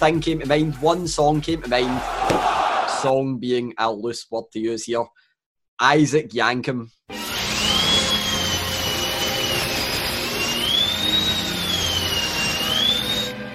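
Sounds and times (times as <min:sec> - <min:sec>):
speech: 0:00.0 - 0:05.2, 0:05.8 - 0:07.2
dentist drill whirring: 0:07.1 - 0:13.3.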